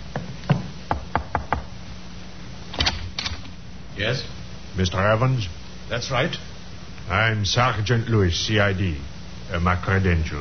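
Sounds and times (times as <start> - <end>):
knocking on a door: 0.2 - 1.7
speech: 4.0 - 6.5, 7.1 - 10.3.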